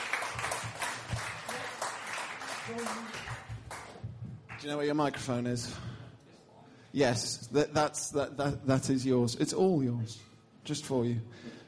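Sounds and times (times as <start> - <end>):
audience applause: 0.0 - 4.7
speech: 2.7 - 3.4, 4.6 - 5.9, 6.9 - 11.6.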